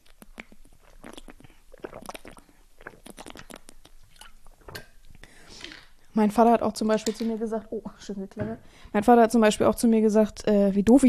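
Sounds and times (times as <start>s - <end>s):
wet mouth clicks and slurps: 0.0s - 4.7s
person sipping and swallowing a drink of water: 0.0s - 6.1s
speech: 6.2s - 11.0s.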